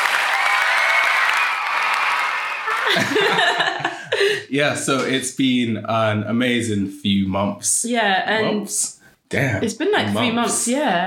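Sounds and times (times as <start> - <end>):
inserted cheering and applause: 0.0 - 4.0
laughter: 2.4 - 4.7
speech: 2.9 - 3.7, 4.5 - 11.0.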